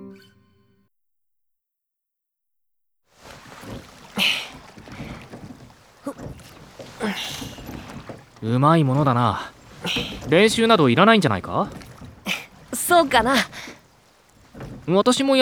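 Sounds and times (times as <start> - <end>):
oars in water, rowing a boat: 3.1 - 15.4
speech: 7.0 - 7.4, 8.4 - 11.8, 12.9 - 13.6, 14.9 - 15.4.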